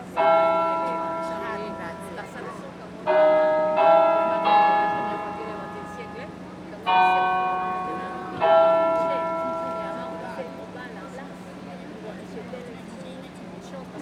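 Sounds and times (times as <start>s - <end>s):
basilica carillon on main square playing: 0.1s - 2.3s, 3.1s - 6.3s, 6.9s - 10.8s.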